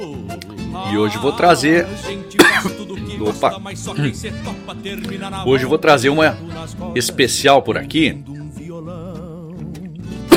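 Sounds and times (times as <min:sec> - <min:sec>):
speech: 0:00.0 - 0:08.3
steady wavering tonal music track: 0:00.0 - 0:10.3
sharp cough from something caught in the throat: 0:02.4 - 0:02.8.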